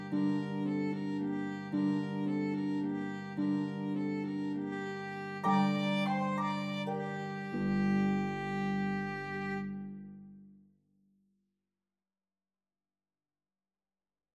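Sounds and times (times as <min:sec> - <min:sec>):
pedal harp: 0:00.0 - 0:10.0
violin: 0:00.0 - 0:10.3.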